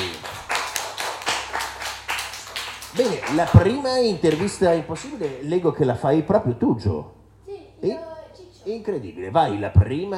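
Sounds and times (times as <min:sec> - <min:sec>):
applause: 0:00.0 - 0:05.4
speech: 0:03.0 - 0:07.2, 0:07.8 - 0:08.1, 0:08.7 - 0:10.1.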